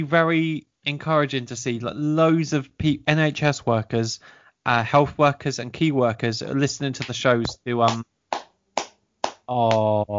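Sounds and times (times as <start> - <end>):
speech: 0.0 - 8.1, 9.5 - 10.1
hand clapping: 7.0 - 9.9.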